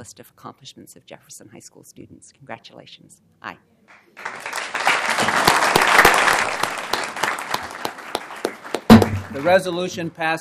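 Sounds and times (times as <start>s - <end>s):
speech: 0.0s - 4.4s, 9.3s - 10.3s
audience applause: 4.2s - 9.7s.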